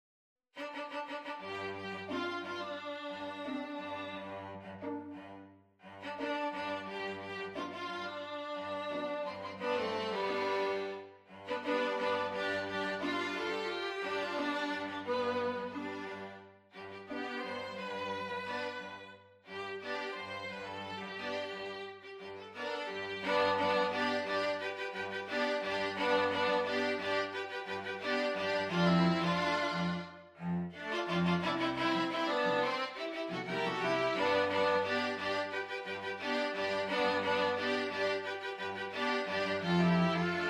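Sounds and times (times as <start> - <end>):
string quintet playing: 0.6 - 40.4.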